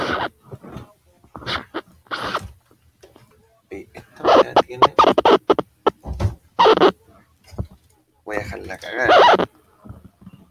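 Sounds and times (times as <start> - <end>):
choppy scratching sounds: 0.0 - 2.5, 4.2 - 7.0, 8.5 - 9.5.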